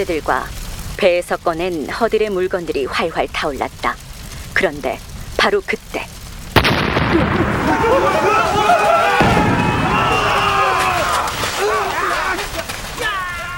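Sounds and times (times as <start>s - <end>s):
speech: 0.0s - 4.0s, 4.6s - 6.2s
two gunpowder-loaded cannons exploding on a burning shipwreck: 6.4s - 13.0s.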